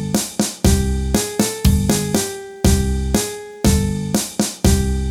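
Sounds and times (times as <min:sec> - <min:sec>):
samba music: 0:00.1 - 0:02.8, 0:04.2 - 0:04.9.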